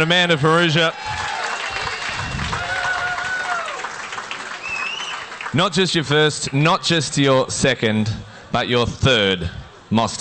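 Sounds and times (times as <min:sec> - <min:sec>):
speech: 0:00.0 - 0:01.2, 0:05.5 - 0:10.1
crowd applause: 0:00.0 - 0:05.9.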